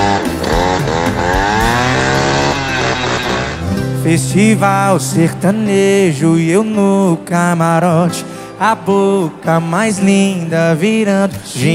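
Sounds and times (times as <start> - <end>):
jet ski engine running: 0.0 - 3.9
speech: 4.0 - 11.7.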